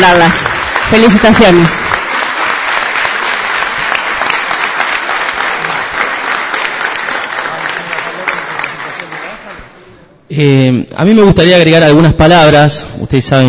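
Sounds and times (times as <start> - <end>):
speech: 0.0 - 1.9, 10.3 - 13.4
loud crowd applause: 0.0 - 9.9.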